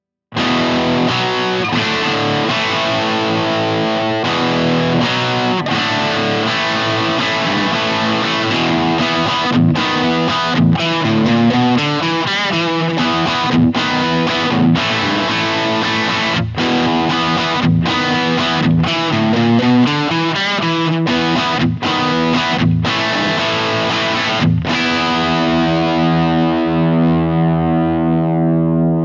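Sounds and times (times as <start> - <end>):
rock chords: 0.3 - 29.0.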